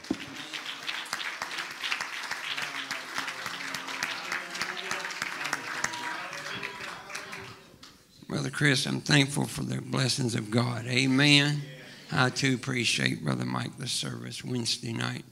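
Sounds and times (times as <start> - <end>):
church audience applauding: 0.0 - 7.7
speech: 8.3 - 15.3.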